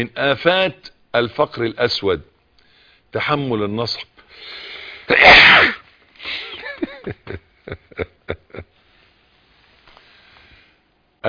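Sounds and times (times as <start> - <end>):
speech: 0.0 - 2.3, 3.1 - 8.7
sneeze: 5.1 - 5.9.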